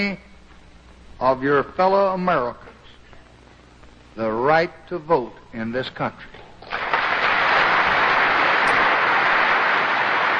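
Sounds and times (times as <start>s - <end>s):
speech: 0.0s - 0.3s, 1.2s - 2.7s, 4.2s - 6.8s
large crowd applause: 6.7s - 10.3s.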